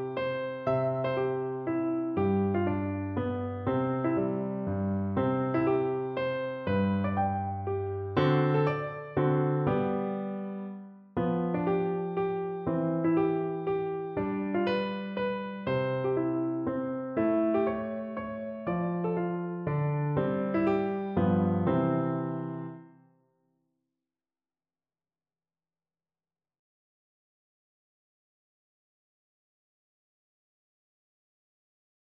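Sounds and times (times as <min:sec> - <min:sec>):
piano waltz: 0:00.0 - 0:23.0.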